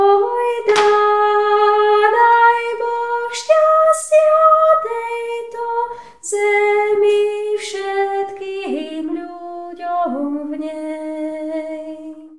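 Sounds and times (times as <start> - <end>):
soprano singing: 0.0 - 12.3.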